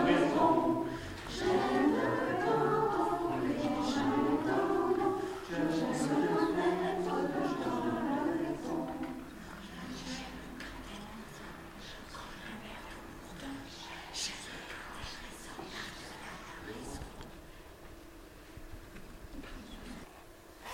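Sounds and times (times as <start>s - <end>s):
purring songs: 0.0s - 10.1s.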